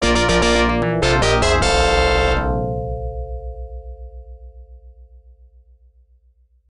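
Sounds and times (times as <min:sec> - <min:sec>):
jingle: 0:00.0 - 0:03.4.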